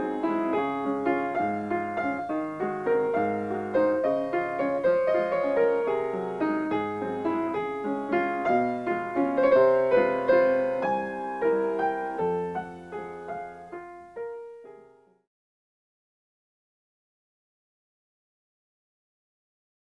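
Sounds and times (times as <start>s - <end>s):
mini waltz music: 0.0s - 14.5s.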